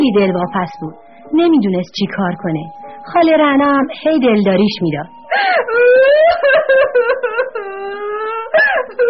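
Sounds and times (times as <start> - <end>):
speech: 0.1 - 9.0
woman crying and wailing: 4.6 - 9.0.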